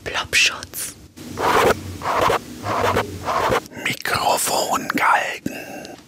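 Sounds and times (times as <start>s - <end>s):
speech: 0.2s - 5.7s
studio knobs and dials being turned: 1.4s - 3.6s.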